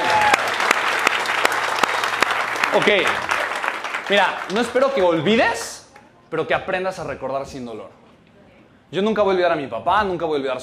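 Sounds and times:
applause: 0.0 - 5.3
speech: 2.8 - 3.3, 4.1 - 8.0, 8.9 - 10.6.

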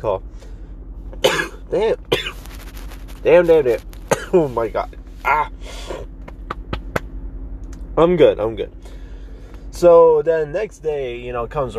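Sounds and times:
speech: 0.0 - 0.5, 1.2 - 2.4, 3.2 - 5.6, 8.0 - 8.8, 9.8 - 11.7
person coughing after choking on a jolly hard candy: 1.2 - 2.4, 4.1 - 4.4.

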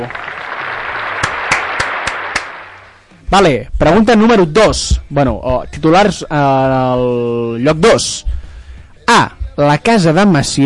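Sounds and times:
speech: 0.0 - 0.2, 3.3 - 8.4, 9.1 - 10.6
applause: 0.0 - 3.0.

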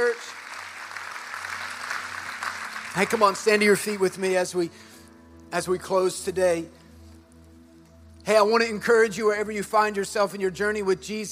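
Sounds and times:
large crowd applause in a reverberant room: 0.0 - 4.1
speech: 3.0 - 4.9, 5.5 - 6.8, 8.3 - 11.3.

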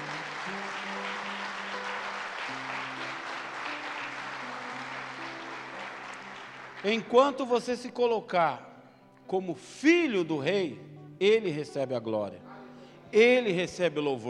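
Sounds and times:
audience applauding: 0.0 - 7.2
speech: 6.8 - 8.7, 9.3 - 12.5, 13.1 - 14.2.

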